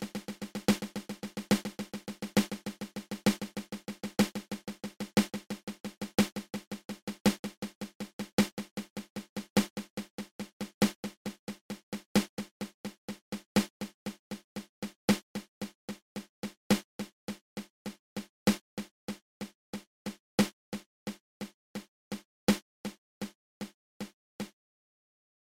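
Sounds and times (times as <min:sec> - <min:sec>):
double paradiddle drumming, open close open: 0:00.0 - 0:20.8.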